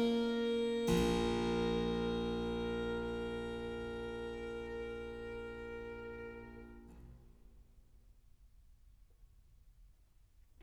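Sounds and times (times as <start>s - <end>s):
violin and harpsichord sonata adagio: 0.0s - 7.0s.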